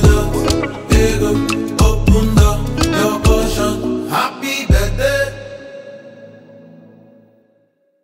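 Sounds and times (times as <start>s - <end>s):
birthday song: 0.0s - 5.4s.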